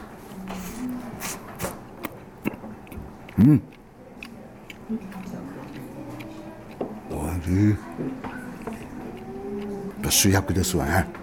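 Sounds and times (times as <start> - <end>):
person humming: 0.5 - 1.8
bites and chewing of warmed dense raisin bread: 0.5 - 11.2
speech: 3.4 - 3.8, 4.9 - 5.3, 7.4 - 8.3, 10.1 - 11.2.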